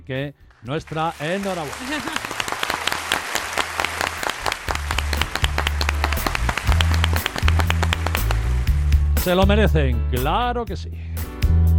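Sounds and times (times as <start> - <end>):
speech: 0.0 - 2.4, 9.2 - 11.1
applause: 0.4 - 9.3.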